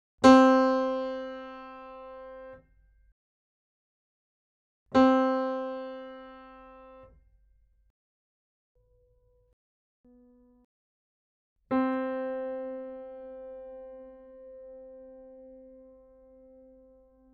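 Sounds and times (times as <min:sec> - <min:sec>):
piano with hammered strings: 0:00.2 - 0:02.6, 0:04.9 - 0:07.2, 0:11.7 - 0:17.3.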